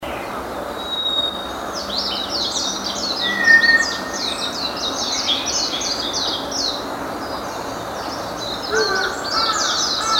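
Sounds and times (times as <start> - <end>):
many small birds chirping and trilling: 0.8 - 10.1
White's thrush giving a drawn-out flat whistle: 3.2 - 4.2.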